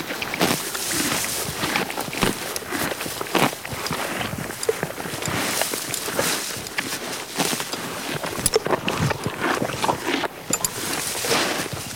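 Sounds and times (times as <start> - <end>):
horse chewing grass: 0.0 - 11.9.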